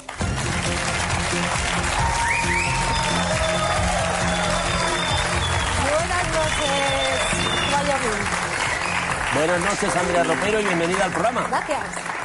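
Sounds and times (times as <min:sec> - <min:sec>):
studio audience applause: 0:00.0 - 0:12.2
whistles and cheers: 0:01.9 - 0:09.4
speech: 0:09.4 - 0:12.1.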